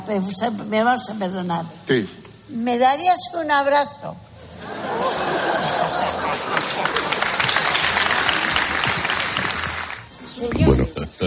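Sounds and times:
speech: 0.1s - 4.3s, 10.4s - 11.2s
laughter: 4.6s - 8.8s, 10.7s - 11.2s
audience applause: 5.6s - 10.1s.

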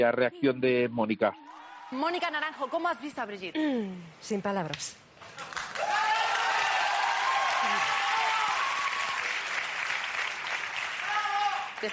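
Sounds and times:
speech: 0.0s - 6.1s, 11.8s - 11.9s
crowd applause: 5.3s - 11.9s
faint cheering: 5.8s - 9.4s, 11.0s - 11.9s.

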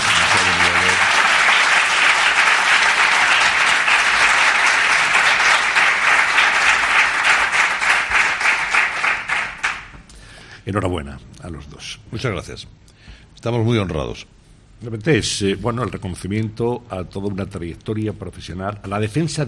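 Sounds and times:
warm applause: 0.0s - 9.9s
speech: 10.7s - 19.4s.

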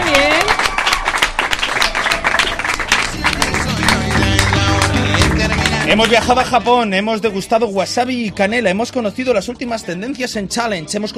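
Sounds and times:
live audience applauding: 0.0s - 6.7s
speech: 5.9s - 11.1s.

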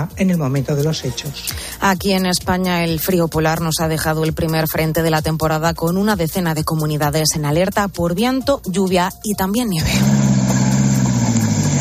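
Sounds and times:
speech: 0.0s - 10.6s
vehicle engine droning: 9.8s - 11.7s.

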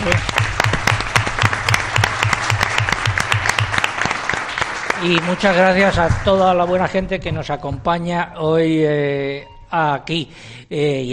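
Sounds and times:
speech: 0.0s - 0.4s, 5.0s - 11.1s
audience applause: 0.0s - 7.1s.

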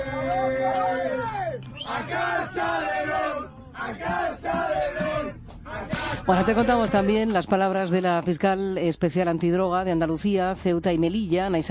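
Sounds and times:
basketball players singing on a bus: 0.0s - 7.4s
speech: 6.3s - 11.6s.

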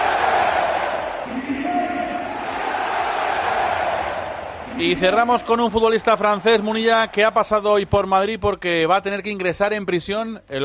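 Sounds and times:
stadium crowd chanting a player's name at the Parc des Princes: 0.0s - 7.3s
speech: 4.8s - 10.6s.

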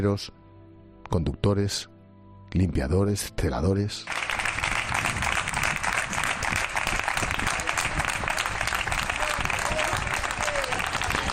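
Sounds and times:
speech: 0.0s - 0.4s, 1.1s - 1.9s, 2.5s - 4.3s
people applauding from balconies: 4.1s - 11.3s.

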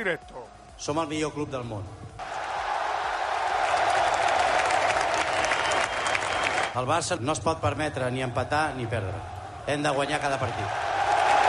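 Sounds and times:
speech: 0.0s - 2.0s, 6.8s - 10.8s
stadium crowd ovation at the Camp Nou: 2.2s - 7.0s, 7.9s - 11.4s.

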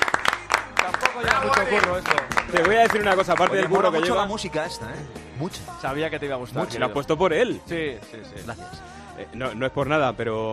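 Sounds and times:
audience hand claps: 0.0s - 4.2s
speech: 1.2s - 10.5s.

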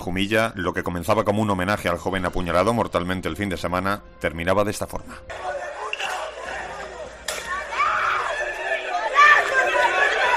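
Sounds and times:
speech: 0.0s - 5.5s
riot crowd shouting and yelling: 5.3s - 10.3s.

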